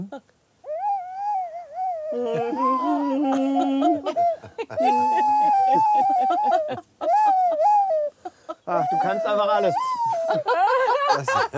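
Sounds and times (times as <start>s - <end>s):
speech: 0.0s - 0.3s, 2.1s - 7.7s, 8.7s - 11.5s
flute playing a slow mournful farewell tune: 0.7s - 3.2s, 4.2s - 10.5s
laughter: 2.2s - 9.0s, 9.6s - 11.5s.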